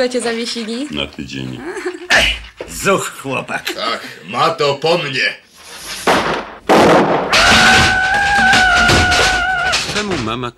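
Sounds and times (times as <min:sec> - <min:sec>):
speech: 0:00.0 - 0:05.4, 0:10.0 - 0:10.5
chemistry experiment explosion blasts: 0:06.1 - 0:09.3.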